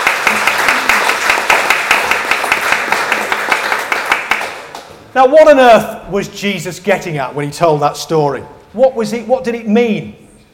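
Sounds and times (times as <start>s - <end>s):
audience applause for helpers: 0.0s - 4.9s
speech: 5.2s - 10.2s.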